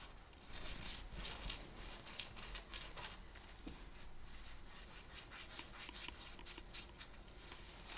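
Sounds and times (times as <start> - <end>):
fabric scratching on jeans and skin: 0.0 - 7.8.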